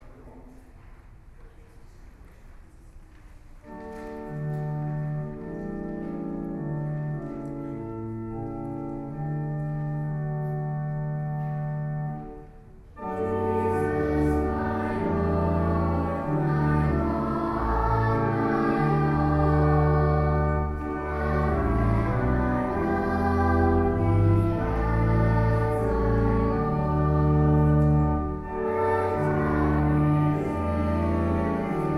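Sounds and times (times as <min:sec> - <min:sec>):
organ: 0:03.6 - 0:12.4, 0:13.0 - 0:31.9
choir: 0:13.2 - 0:31.9.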